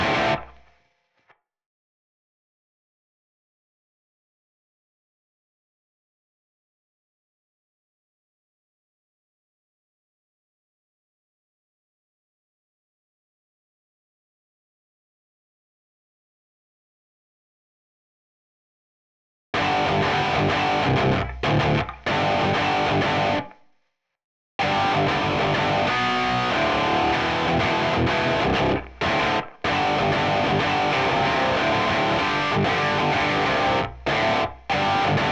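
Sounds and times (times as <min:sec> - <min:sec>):
backing guitar: 0:00.0 - 0:00.6, 0:19.6 - 0:23.5, 0:24.6 - 0:35.2.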